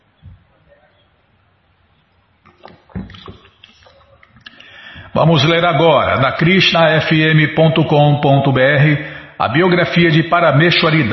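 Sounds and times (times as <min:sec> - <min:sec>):
person drinking a sip of water: 0:02.4 - 0:05.1
speech: 0:05.2 - 0:11.1.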